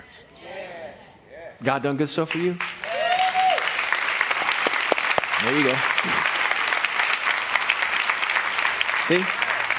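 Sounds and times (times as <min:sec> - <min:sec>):
speech: 0:01.6 - 0:02.7, 0:05.4 - 0:06.4, 0:09.1 - 0:09.4
audience clapping: 0:02.2 - 0:09.7.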